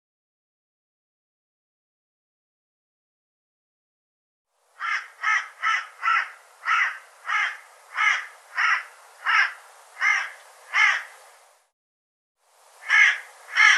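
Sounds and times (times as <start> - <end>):
bird harsh calls: 4.8 - 11.2, 12.8 - 13.7.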